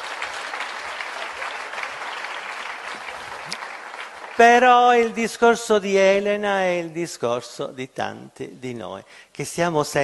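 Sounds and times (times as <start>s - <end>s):
audience clapping: 0.0s - 5.4s
speech: 4.4s - 10.0s.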